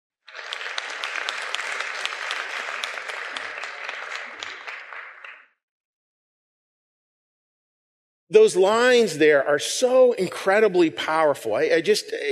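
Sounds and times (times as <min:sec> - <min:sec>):
round of applause: 0:00.2 - 0:05.6
speech: 0:08.3 - 0:12.3.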